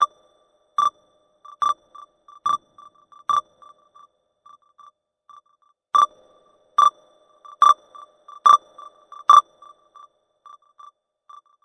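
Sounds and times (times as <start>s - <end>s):
EKG beep with delay: 0.8s - 4.1s, 6.0s - 6.2s, 6.8s - 11.6s.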